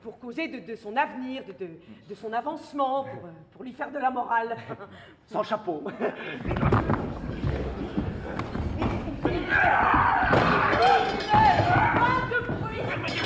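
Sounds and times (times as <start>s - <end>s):
speech: 0.3s - 8.0s, 9.6s - 11.4s
people talking and shouting: 6.3s - 13.2s
wooden chairs being banged and knocked about: 6.4s - 13.2s.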